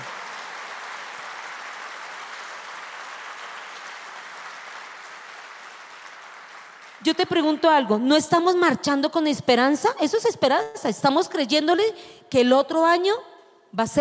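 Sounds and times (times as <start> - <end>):
audience applauding: 0.0 - 7.4
speech: 7.0 - 13.9.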